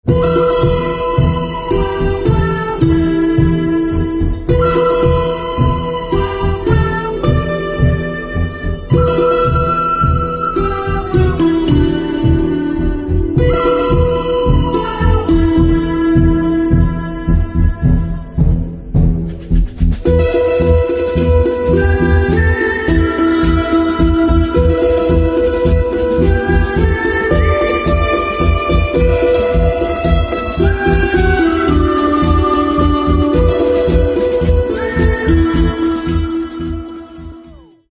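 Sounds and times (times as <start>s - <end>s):
santoor background music: 0.0s - 19.0s, 20.0s - 37.9s.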